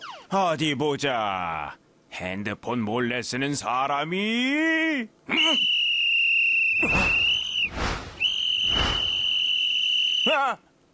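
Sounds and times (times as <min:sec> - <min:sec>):
speech: 0:00.3 - 0:05.7, 0:06.8 - 0:08.0, 0:10.4 - 0:10.7
whistle being blown as a test: 0:05.3 - 0:10.4.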